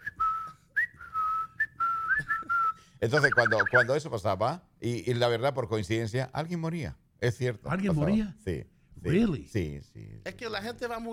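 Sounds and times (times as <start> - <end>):
person whistling a birdlike call: 0.0 - 3.8
speech: 3.0 - 11.1.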